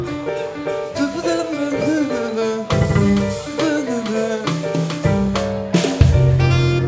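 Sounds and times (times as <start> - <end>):
jazz bar stag night music loop: 0.0 - 6.8.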